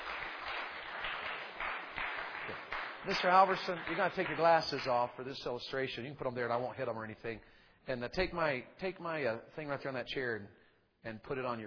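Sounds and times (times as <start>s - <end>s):
audience applause: 0.0s - 5.1s
speech: 3.1s - 11.6s.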